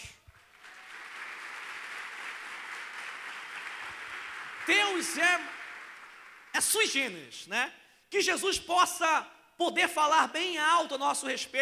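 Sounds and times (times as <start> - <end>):
audience applause: 0.3 - 6.6
speech: 4.7 - 5.6, 6.6 - 11.6.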